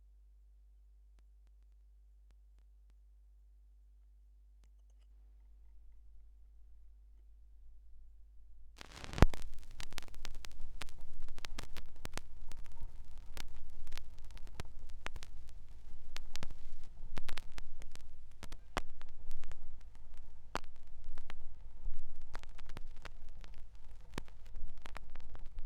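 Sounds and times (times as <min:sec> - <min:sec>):
vinyl record noise: 0:05.5 - 0:25.6.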